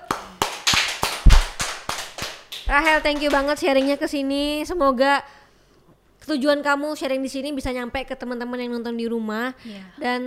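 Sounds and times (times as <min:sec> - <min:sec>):
audience clapping: 0:00.0 - 0:04.0
speech: 0:02.7 - 0:05.4, 0:06.3 - 0:10.2.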